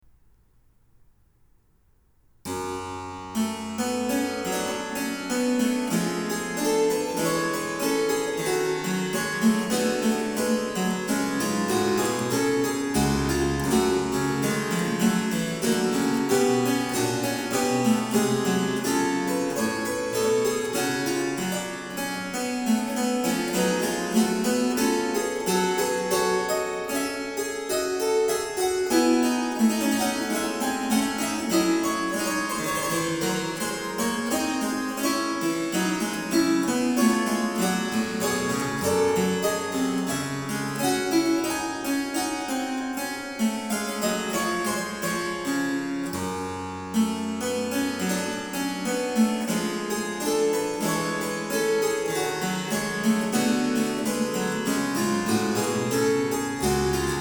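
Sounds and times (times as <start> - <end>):
harpsichord: 2.5 - 57.1.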